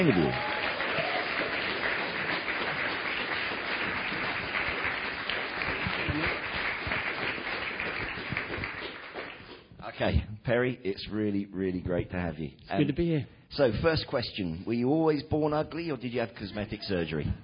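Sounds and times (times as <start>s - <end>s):
speech: 0.0s - 0.5s, 10.0s - 17.4s
audience round of applause: 0.0s - 9.6s.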